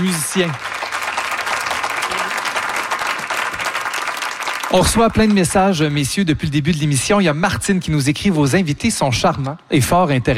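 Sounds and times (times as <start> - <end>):
speech: 0.0 - 0.7, 4.7 - 10.3
audience applauding: 0.0 - 6.2.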